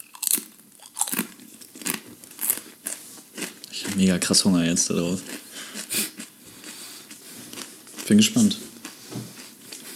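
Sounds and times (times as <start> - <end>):
crunching and chewing a tortilla chip: 0.0 - 4.0
speech: 4.0 - 5.4, 8.1 - 8.7.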